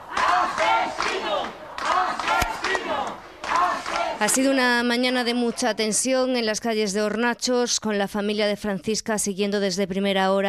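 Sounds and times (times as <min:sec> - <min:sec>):
crowd of neighbours shouting angrily: 0:00.0 - 0:04.6
speech: 0:04.2 - 0:10.4.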